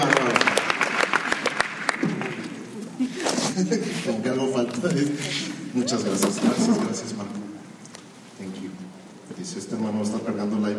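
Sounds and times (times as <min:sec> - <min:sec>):
audience applause: 0:00.0 - 0:02.8
speech: 0:03.6 - 0:07.5, 0:09.5 - 0:10.7.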